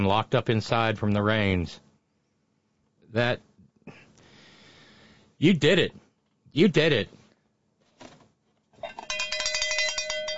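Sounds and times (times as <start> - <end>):
speech: 0.0 - 1.9, 3.1 - 4.0, 5.4 - 6.0, 6.6 - 7.2
cowbell ringing: 8.8 - 10.3.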